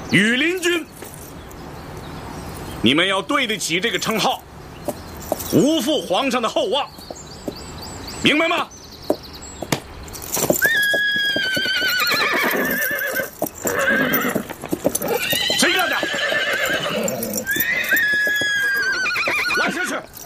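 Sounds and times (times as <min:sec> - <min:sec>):
speech: 0:00.1 - 0:00.9, 0:02.8 - 0:04.5, 0:05.5 - 0:07.0, 0:08.2 - 0:08.7
hooves clip-clopping: 0:04.2 - 0:20.2
horse neighing: 0:10.6 - 0:20.2.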